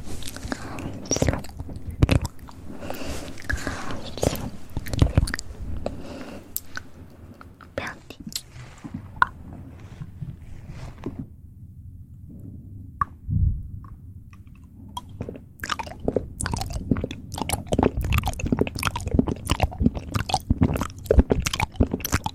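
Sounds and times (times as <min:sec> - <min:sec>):
wet mouth clicks smacks and snaps: 0:00.0 - 0:09.4, 0:14.3 - 0:22.3
steady low hum: 0:00.0 - 0:22.3.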